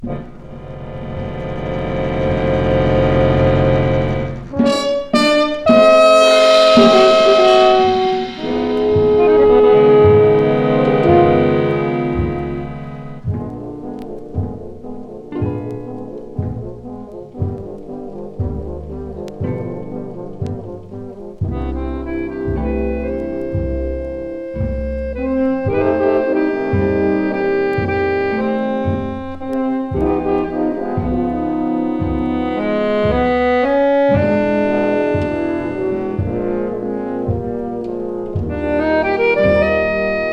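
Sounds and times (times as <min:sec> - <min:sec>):
four French horns: 0:00.0 - 0:40.3
rhythm section: 0:00.0 - 0:40.3.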